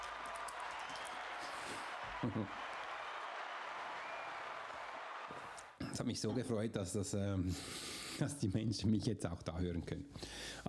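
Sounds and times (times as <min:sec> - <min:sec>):
applause sound effect: 0:00.0 - 0:05.8
laughter: 0:01.9 - 0:03.2
speech: 0:02.2 - 0:02.7, 0:06.0 - 0:10.6.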